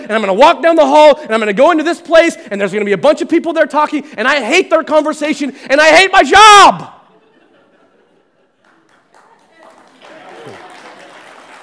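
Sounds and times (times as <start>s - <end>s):
speech: 0.1s - 7.0s
laughter: 7.0s - 11.3s
audience clapping: 8.5s - 11.6s.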